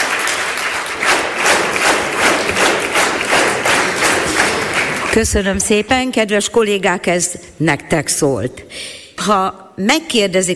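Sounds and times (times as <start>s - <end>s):
audience applause for students: 0.0s - 5.4s
speech: 5.2s - 10.5s.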